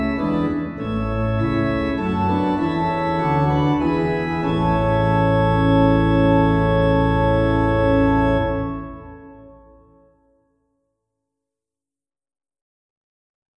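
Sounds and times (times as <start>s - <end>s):
organ playing a hymn: 0.0s - 10.2s.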